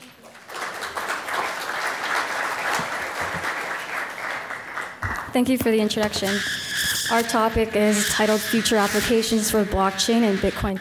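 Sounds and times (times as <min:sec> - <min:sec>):
audience applause welcoming a panel speaker at a blockchain conference session: 0:00.0 - 0:05.3
speech: 0:05.3 - 0:10.7.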